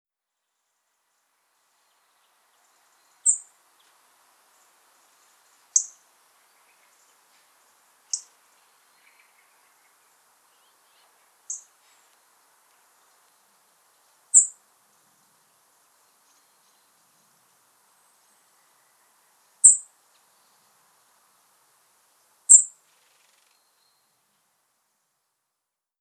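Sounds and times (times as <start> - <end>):
soft steady hiss: 0.3 - 25.9
faint lower chirps: 2.6 - 3.5, 5.5 - 12.1, 14.3 - 14.6, 18.1 - 20.6, 22.5 - 24.2
European robin tseep calls: 14.3 - 14.6, 22.5 - 22.7.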